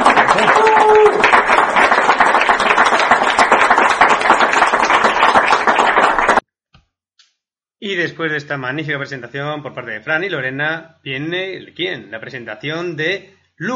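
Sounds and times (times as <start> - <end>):
crowd applause: 0.0 - 6.4
speech: 8.2 - 13.7.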